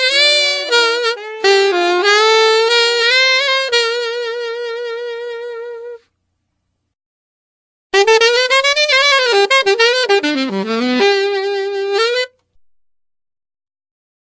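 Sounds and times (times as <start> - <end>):
saxophone: 0.0 - 6.1, 8.0 - 12.5.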